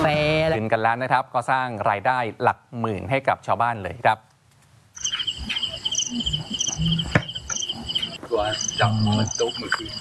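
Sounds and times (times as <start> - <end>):
speech: 0.1 - 4.3, 5.0 - 7.2, 8.3 - 9.9
recorded insect calls played as a lure: 4.9 - 9.9.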